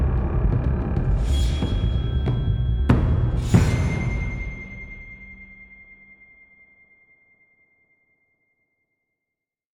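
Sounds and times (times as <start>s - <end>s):
action music loop: 0.0s - 5.4s.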